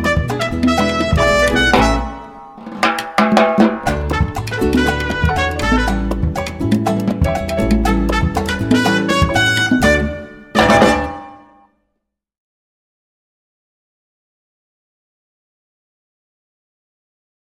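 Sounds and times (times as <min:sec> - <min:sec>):
Cuban cha cha music: 0:00.0 - 0:11.6.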